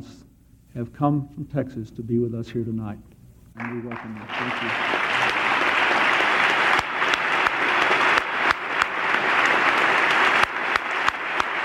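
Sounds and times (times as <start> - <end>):
speech: 0.8 - 5.1
amplified audience applause: 3.6 - 11.6.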